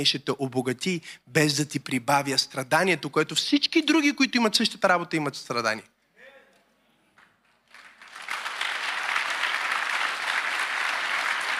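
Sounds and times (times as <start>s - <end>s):
speech: 0.0s - 5.9s
audience applauding: 7.2s - 11.5s.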